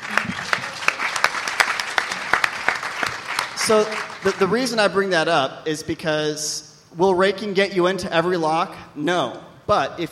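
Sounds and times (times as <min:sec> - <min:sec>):
applause: 0:00.0 - 0:04.8
speech: 0:03.7 - 0:10.1.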